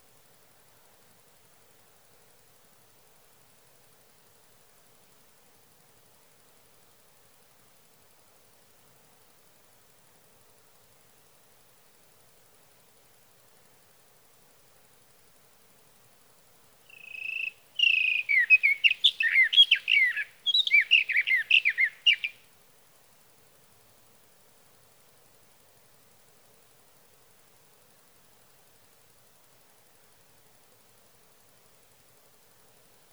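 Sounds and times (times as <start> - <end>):
sage thrasher: 16.9 - 22.4.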